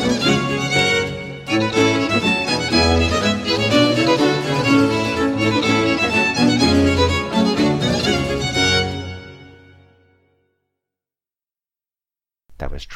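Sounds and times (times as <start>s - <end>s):
fast instrumental piece: 0.0s - 10.0s.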